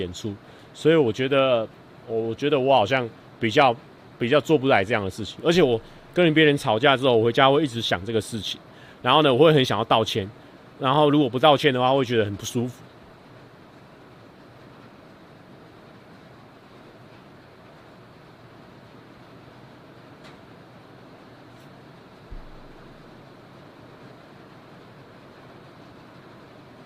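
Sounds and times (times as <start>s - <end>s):
speech: 0.0s - 12.9s
heavy rain outside: 0.0s - 26.8s
low thump: 22.3s - 22.9s.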